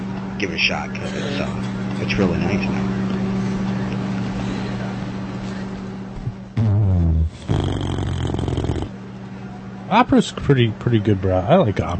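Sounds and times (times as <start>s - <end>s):
low steady droning hum: 0.0s - 11.9s
speech: 0.4s - 3.0s, 9.9s - 11.9s
person snoring: 6.6s - 8.9s.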